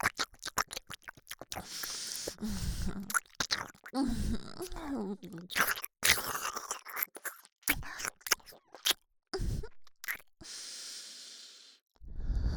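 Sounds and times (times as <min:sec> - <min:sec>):
ear licking on the left ear: 0:00.0 - 0:04.0, 0:04.6 - 0:09.0
nose breathing in the left ear: 0:01.6 - 0:03.1, 0:10.4 - 0:12.5.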